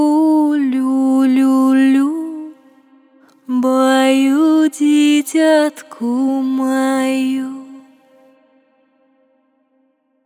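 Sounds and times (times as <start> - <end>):
Russian folk lullaby singing: 0.0 - 2.6, 3.4 - 8.0.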